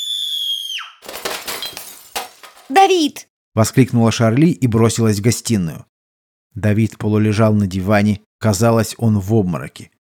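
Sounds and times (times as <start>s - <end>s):
glass shattering into shards: 1.0s - 2.8s
speech: 2.7s - 5.9s, 6.6s - 9.9s.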